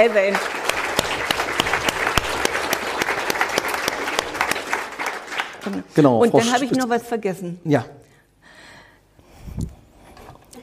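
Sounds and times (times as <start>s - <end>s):
speech: 0.0s - 0.6s, 5.6s - 8.0s
audience clapping: 0.0s - 6.7s.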